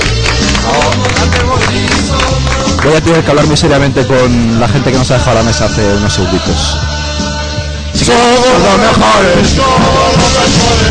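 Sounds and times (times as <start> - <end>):
audience applause: 0.0 - 3.0
speech: 2.8 - 6.9, 8.0 - 10.8.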